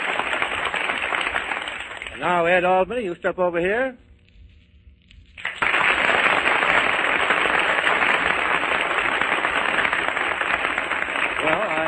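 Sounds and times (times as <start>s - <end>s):
studio audience applause: 0.0s - 2.4s, 5.4s - 11.8s
speech: 2.2s - 4.1s.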